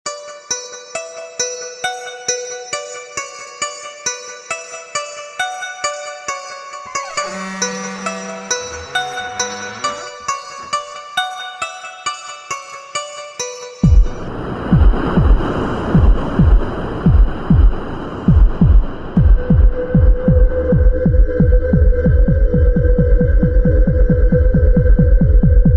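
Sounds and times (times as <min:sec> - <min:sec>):
horror beat: 0:06.3 - 0:11.0, 0:13.8 - 0:25.7.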